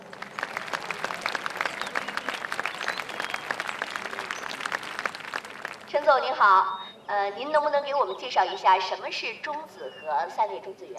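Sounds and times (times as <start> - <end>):
audience applause: 0.0 - 6.0
speech: 6.0 - 10.9.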